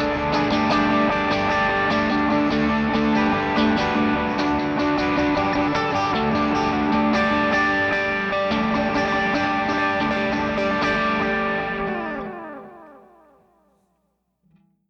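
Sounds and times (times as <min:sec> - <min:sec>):
echoing note: 0:00.1 - 0:13.7.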